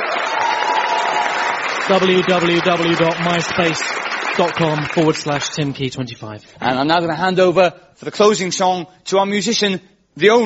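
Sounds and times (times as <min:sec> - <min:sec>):
audience applause: 0:00.0 - 0:05.7
speech: 0:01.9 - 0:10.4.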